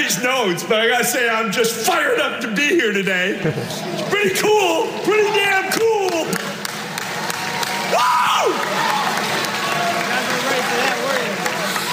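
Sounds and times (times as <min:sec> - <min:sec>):
speech: 0:00.1 - 0:06.4
reporters' uncomfortable applause: 0:05.2 - 0:11.9.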